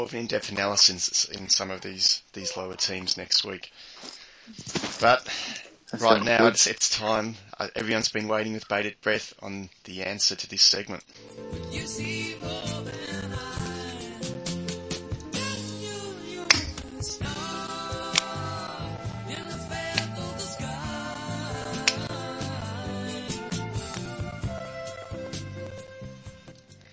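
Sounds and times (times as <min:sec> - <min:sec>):
speech: 0:00.0 - 0:12.7
song playing: 0:11.2 - 0:26.8
finger snaps: 0:16.5 - 0:16.9, 0:18.1 - 0:18.4, 0:19.9 - 0:20.2, 0:21.8 - 0:22.2.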